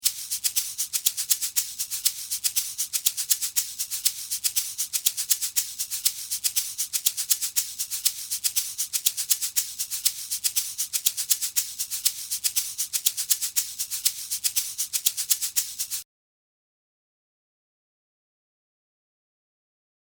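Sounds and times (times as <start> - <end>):
shaker: 0.0 - 16.0.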